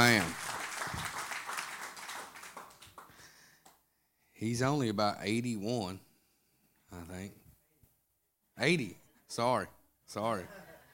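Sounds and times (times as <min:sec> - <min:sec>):
audience hand clapping: 0:00.0 - 0:03.8
speech: 0:04.4 - 0:06.1, 0:06.9 - 0:07.4, 0:08.6 - 0:10.6.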